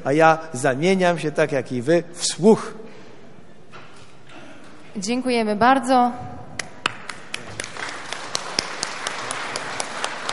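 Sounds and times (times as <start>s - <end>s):
speech: 0.0s - 2.8s, 5.0s - 6.4s
small crowd applauding: 6.8s - 10.3s.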